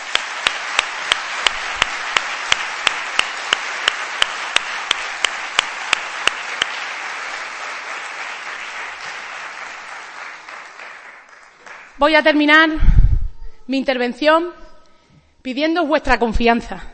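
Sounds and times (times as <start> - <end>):
audience applause: 0.0 - 12.0
speech: 12.0 - 13.0, 13.7 - 14.6, 15.4 - 16.9.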